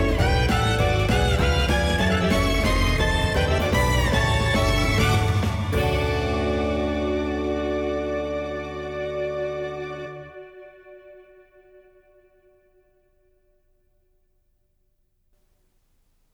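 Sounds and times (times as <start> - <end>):
jazz music on gold-plated tape: 0.0 - 12.2.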